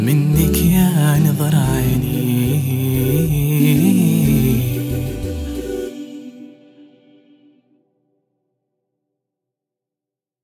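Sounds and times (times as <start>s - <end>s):
a cappella singing: 0.0s - 7.6s.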